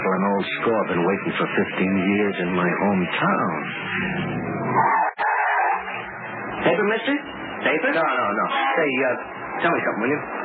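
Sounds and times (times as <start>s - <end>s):
speech: 0.4s - 5.0s, 6.6s - 10.4s
car speeding with tires skidding: 3.7s - 6.0s.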